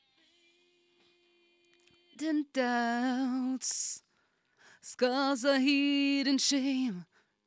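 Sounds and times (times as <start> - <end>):
vocals: 0.0 - 7.4.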